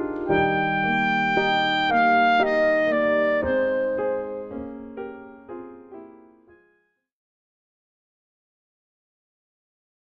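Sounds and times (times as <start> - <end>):
clarinet playing classical music: 0.1 - 5.4.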